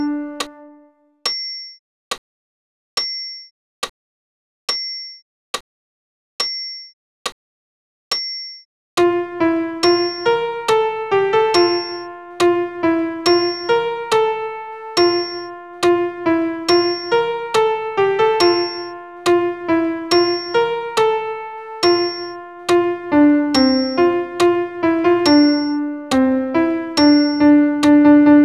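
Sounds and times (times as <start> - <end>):
solo piano piece: 0.0 - 0.9, 9.0 - 28.4.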